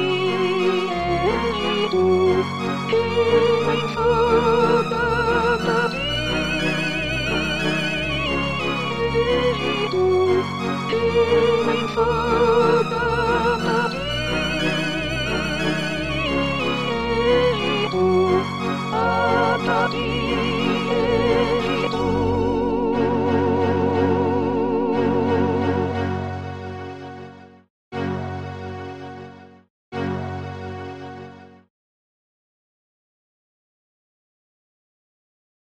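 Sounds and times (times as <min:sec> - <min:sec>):
first soprano singing: 0:00.0 - 0:26.2.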